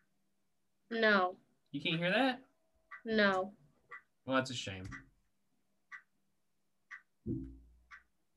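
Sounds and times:
speech: 0:00.9 - 0:03.6, 0:04.3 - 0:05.1, 0:07.2 - 0:07.6
clock ticking: 0:00.9 - 0:08.3
dull low thump: 0:07.2 - 0:07.7.

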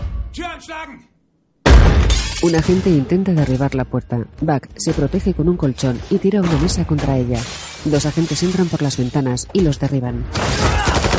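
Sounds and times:
speech: 0:00.4 - 0:01.1, 0:02.4 - 0:11.0
grenade explosion covered by a shield in an action film: 0:01.6 - 0:02.9, 0:10.3 - 0:11.1.

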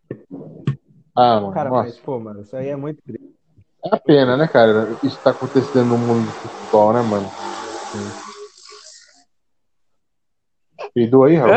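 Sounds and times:
speech: 0:01.2 - 0:08.3, 0:11.0 - 0:11.5
motorcycle passing: 0:04.2 - 0:09.1.

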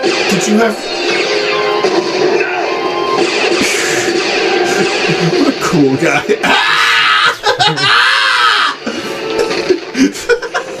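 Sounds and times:
cabin full of firewood exploding in a video game: 0:00.0 - 0:06.6
video game noise: 0:00.0 - 0:10.7
speech: 0:00.3 - 0:01.2, 0:04.8 - 0:07.0
laughter: 0:03.6 - 0:10.7.

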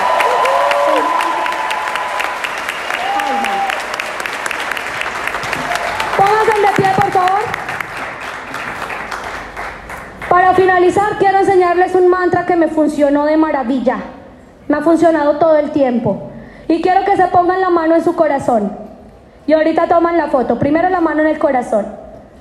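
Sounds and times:
loud sustained audience applause: 0:00.0 - 0:10.3
speech: 0:10.9 - 0:14.1, 0:14.7 - 0:18.8, 0:19.5 - 0:22.0.

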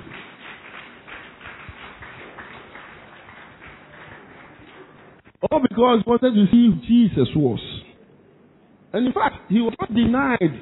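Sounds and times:
audience clapping hands: 0:00.0 - 0:05.3
speech: 0:05.4 - 0:07.7, 0:08.9 - 0:10.6.

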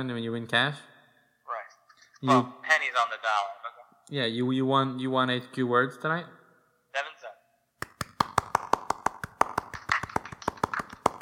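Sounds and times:
speech: 0:00.0 - 0:00.9, 0:02.2 - 0:06.4
hand clapping: 0:07.8 - 0:11.2.

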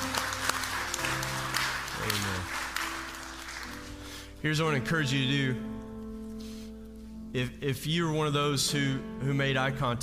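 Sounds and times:
audience applause: 0:00.0 - 0:04.2
speech: 0:04.4 - 0:05.7, 0:07.3 - 0:10.0.

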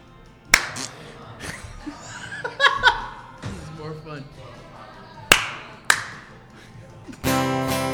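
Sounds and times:
hand clapping: 0:00.4 - 0:01.8, 0:05.3 - 0:07.8
laughter: 0:00.6 - 0:07.5
speech: 0:04.1 - 0:04.7.

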